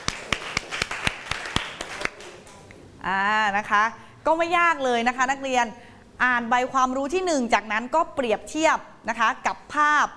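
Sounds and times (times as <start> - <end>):
classroom applause for a student: 0.0 - 2.5
speech: 3.0 - 10.1.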